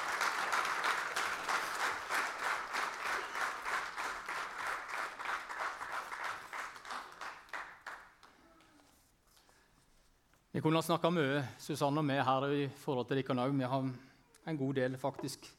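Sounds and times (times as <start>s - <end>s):
audience applause: 0.0s - 8.3s
speech: 10.6s - 15.5s.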